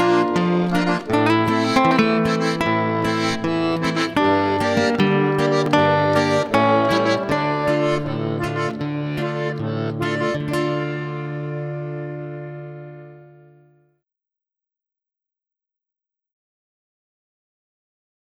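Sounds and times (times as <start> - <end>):
bayan button accordion in duet: 0.0 - 13.7
guitar in duet: 0.0 - 14.0.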